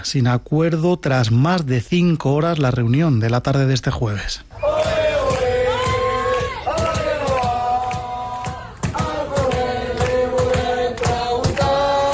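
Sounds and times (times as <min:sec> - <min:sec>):
speech: 0:00.0 - 0:04.7
protesting teachers chanting in the street: 0:04.5 - 0:12.1
sharp rhythmic claps or beats: 0:04.7 - 0:12.1.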